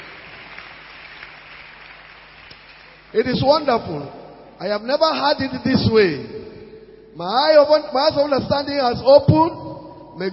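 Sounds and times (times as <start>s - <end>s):
audience clapping: 0.0s - 3.2s
speech: 3.1s - 6.4s, 7.2s - 9.6s.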